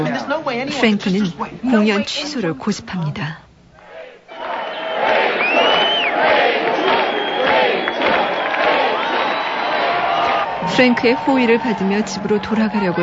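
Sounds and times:
speech: 0:00.0 - 0:03.5, 0:10.6 - 0:13.0
large crowd roaring, cheering and chanting a name: 0:03.8 - 0:13.0.

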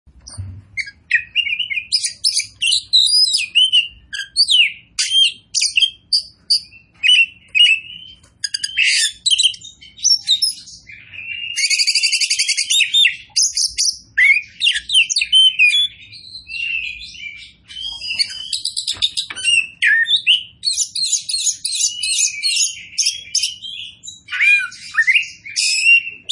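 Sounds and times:
Oriental magpie-robin kacer poci form singing loudly: 0:00.2 - 0:26.2.

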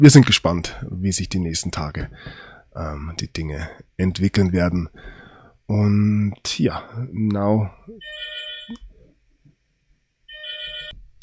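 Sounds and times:
speech: 0:00.0 - 0:08.9
phone ringtone trilling: 0:08.0 - 0:08.8, 0:10.3 - 0:11.0.

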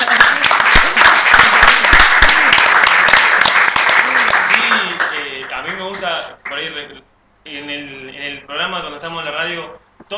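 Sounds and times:
crowd applause: 0:00.0 - 0:05.3
speech: 0:06.6 - 0:10.1.

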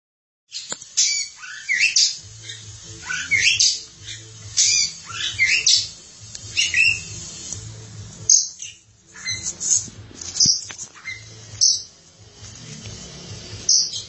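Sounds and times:
Oriental magpie-robin song: 0:00.5 - 0:07.4, 0:08.2 - 0:09.6, 0:10.4 - 0:11.9, 0:13.6 - 0:14.0.

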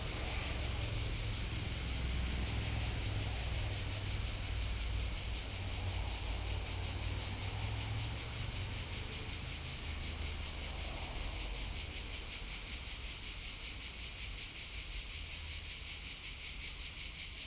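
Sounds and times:
crickets and cicadas calling in a city street in summer in Bologna: 0:00.0 - 0:17.4.

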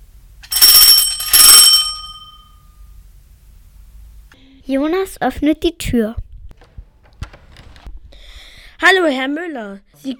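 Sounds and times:
electric doorbell ringing at a family's front door: 0:00.5 - 0:02.8
speech: 0:04.7 - 0:06.2, 0:08.9 - 0:10.1.

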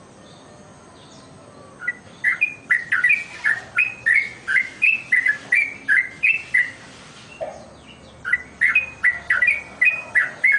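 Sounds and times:
bird ringing chirps: 0:01.8 - 0:06.8, 0:07.5 - 0:10.5.

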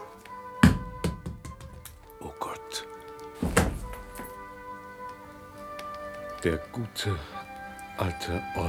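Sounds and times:
heavy wooden thunk: 0:00.6 - 0:02.0, 0:03.4 - 0:04.3
speech: 0:06.4 - 0:07.4, 0:08.0 - 0:08.6.

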